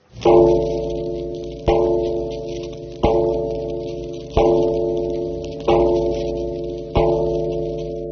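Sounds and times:
Liberty Bell ringing: 0:00.2 - 0:08.0.

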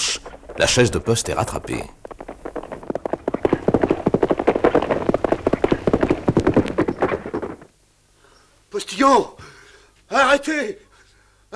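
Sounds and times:
horses galloping in pursuit: 0:00.0 - 0:07.8
speech: 0:00.6 - 0:02.0, 0:09.0 - 0:09.4, 0:10.1 - 0:10.8.

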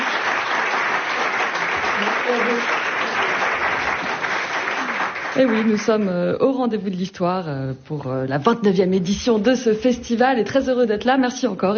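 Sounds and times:
audience applause: 0:00.0 - 0:06.0
speech: 0:02.3 - 0:02.8, 0:05.4 - 0:11.7.

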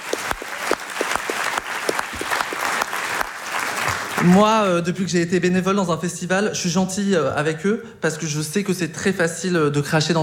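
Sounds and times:
audience applause: 0:00.0 - 0:04.4
speech: 0:04.2 - 0:10.2.

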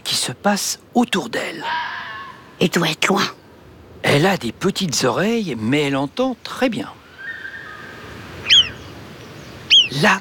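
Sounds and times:
speech: 0:00.2 - 0:02.0, 0:02.6 - 0:03.4, 0:04.0 - 0:07.0, 0:09.9 - 0:10.2
marmot alarm whistle: 0:07.2 - 0:08.8, 0:09.7 - 0:10.0.

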